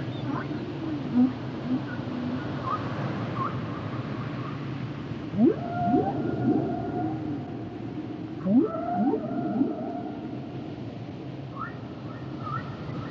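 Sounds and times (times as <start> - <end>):
whale song: 0.0 - 3.8, 5.3 - 10.8
steady low rumble: 0.0 - 12.1.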